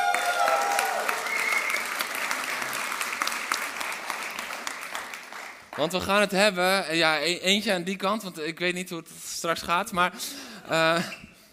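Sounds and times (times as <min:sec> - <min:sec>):
loud applause from audience: 0:00.0 - 0:05.9
whistles: 0:01.1 - 0:02.1
speech: 0:05.8 - 0:11.2.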